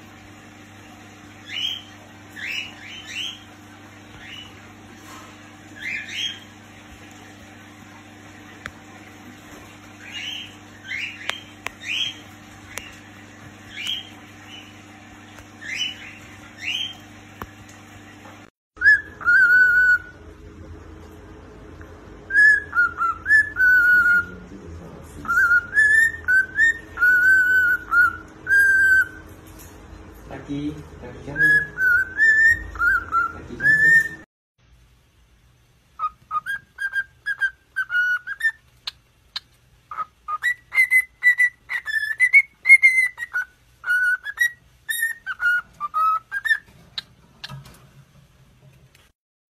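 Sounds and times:
electrical hum: 0.0s - 49.2s
cockatiel whistling: 1.4s - 3.4s, 5.8s - 6.5s, 10.0s - 13.0s, 13.7s - 14.7s, 15.6s - 17.0s, 18.8s - 20.2s, 22.3s - 24.4s, 25.2s - 29.3s, 31.3s - 34.3s, 36.0s - 47.6s.

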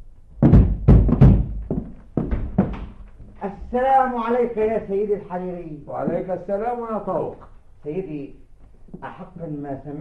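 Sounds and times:
heavy, dull knocking on a door: 0.4s - 3.0s
speech: 3.7s - 8.4s, 9.0s - 9.9s.

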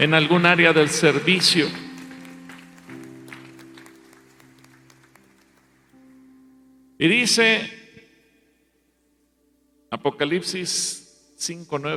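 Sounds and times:
speech: 0.0s - 1.8s, 7.0s - 7.8s, 9.9s - 11.9s
audience applauding: 0.0s - 6.1s.

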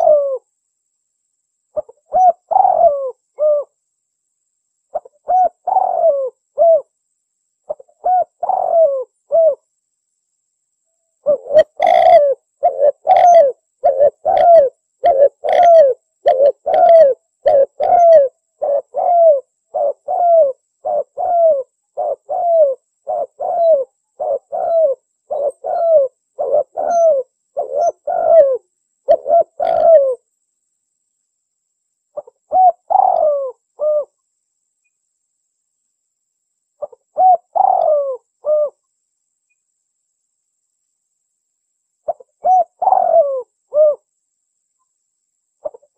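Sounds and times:
bird cooing: 0.0s - 0.5s, 1.7s - 3.8s, 4.9s - 7.0s, 7.7s - 9.7s, 11.2s - 30.3s, 32.2s - 34.2s, 36.8s - 38.9s, 42.1s - 44.1s, 45.6s - 45.9s.

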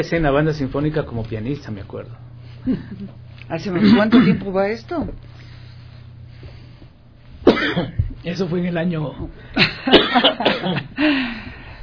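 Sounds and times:
speech: 0.0s - 5.5s, 7.6s - 11.4s
people coughing: 2.6s - 4.5s, 7.4s - 8.2s, 9.6s - 11.0s.

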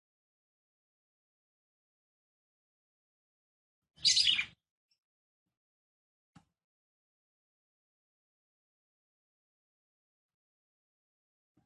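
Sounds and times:
red-cowled cardinal twittering: 4.0s - 4.6s.

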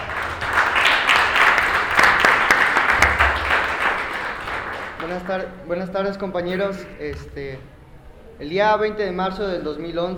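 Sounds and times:
audience applause at a conference on an alternative education project: 0.0s - 5.4s
speech: 5.1s - 7.8s, 8.4s - 10.1s.

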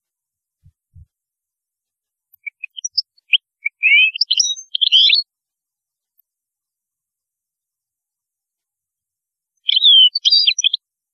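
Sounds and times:
European goldfinch song: 2.3s - 5.3s, 9.6s - 10.9s.

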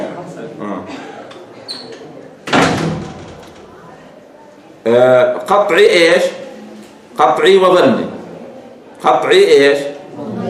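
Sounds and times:
door being closed: 1.8s - 3.8s
speech: 4.9s - 6.4s, 7.2s - 8.1s, 9.0s - 9.9s.

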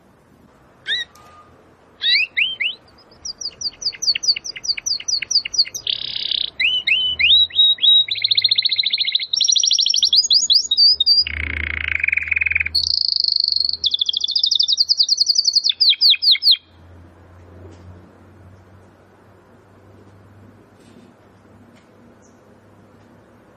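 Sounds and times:
Domestic canary song: 0.0s - 17.0s, 21.9s - 23.5s.

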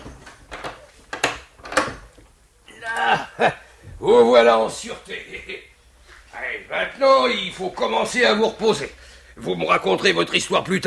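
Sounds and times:
door being shut and double-locked in a radio drama: 0.0s - 2.2s
speech: 3.4s - 5.7s, 6.5s - 10.8s.

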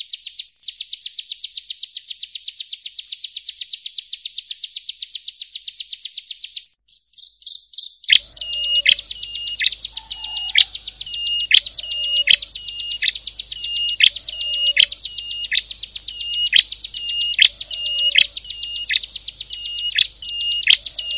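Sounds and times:
prinia song with rapid repeated notes and sliding whistles: 0.0s - 21.1s.

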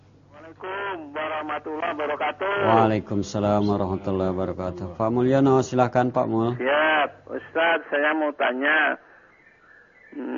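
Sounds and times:
faint steady hum: 0.0s - 10.3s
caller speaking over a telephone line to a live Islamic question-and-answer broadcast: 0.3s - 9.1s, 10.1s - 10.3s
speech: 0.5s - 9.1s, 10.1s - 10.3s.

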